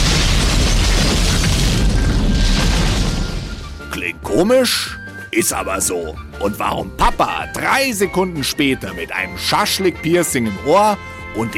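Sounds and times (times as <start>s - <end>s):
gasoline-doused charcoal grill igniting in an explosion: 0.0s - 3.9s
speech: 4.4s - 11.5s.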